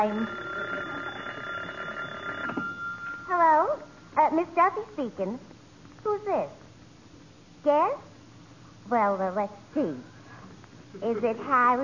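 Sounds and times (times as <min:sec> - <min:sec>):
speech: 0:00.0 - 0:00.4, 0:04.2 - 0:06.6, 0:07.6 - 0:08.1, 0:08.8 - 0:10.1, 0:10.9 - 0:11.8
telephone ringing: 0:00.0 - 0:04.1.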